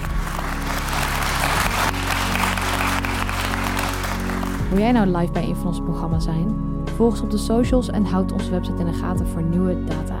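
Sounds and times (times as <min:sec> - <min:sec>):
audience applause: 0:00.0 - 0:04.8
speech: 0:04.7 - 0:10.1.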